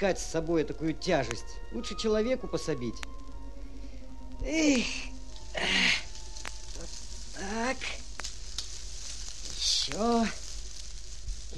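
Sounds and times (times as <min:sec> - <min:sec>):
speech: 0:00.0 - 0:03.3, 0:04.4 - 0:06.0, 0:07.4 - 0:08.0, 0:09.9 - 0:10.4
fire sizzling out as it is smothered: 0:00.0 - 0:11.5.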